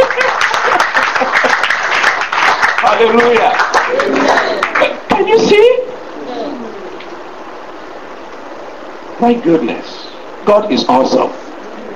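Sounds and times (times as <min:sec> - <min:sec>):
church congregation clapping during a service: 0:00.0 - 0:05.0
speech: 0:02.9 - 0:03.6, 0:09.2 - 0:11.4.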